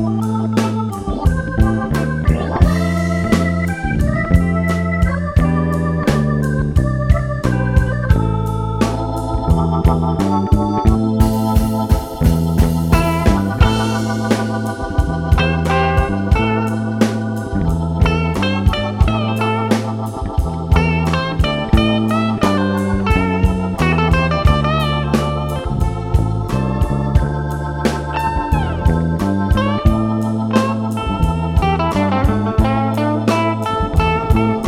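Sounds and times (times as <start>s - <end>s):
slow funky blues music: 0.0s - 34.6s.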